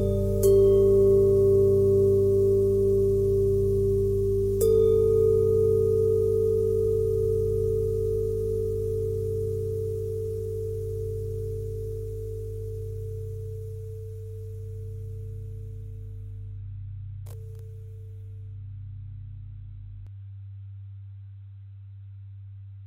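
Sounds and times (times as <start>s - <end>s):
bent and twisted bell tone: 0.0s - 16.4s.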